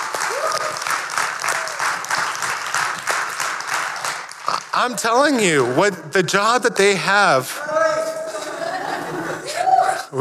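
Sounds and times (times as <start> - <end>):
audience applause: 0.0 - 5.9
speech: 4.8 - 8.0
laughter: 8.0 - 10.1.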